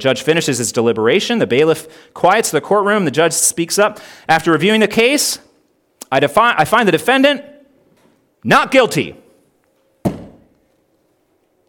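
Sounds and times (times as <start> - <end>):
speech: 0.0 - 5.4, 6.1 - 7.5, 8.4 - 9.2
gavel pounding: 10.0 - 10.6.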